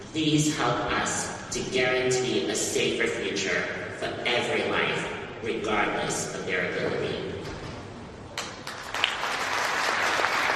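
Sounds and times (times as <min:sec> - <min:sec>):
speech: 0:00.1 - 0:07.3
audience applause: 0:08.6 - 0:10.5.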